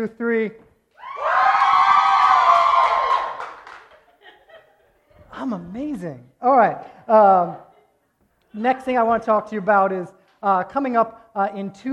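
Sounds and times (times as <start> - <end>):
speech: 0.0 - 0.6, 5.4 - 7.7, 8.5 - 11.9
crowd cheering: 1.0 - 4.1
laughter: 3.6 - 5.4.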